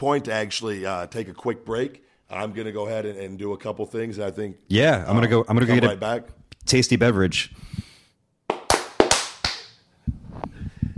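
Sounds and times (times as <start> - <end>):
speech: 0.0 - 7.8
hand clap: 8.5 - 9.8.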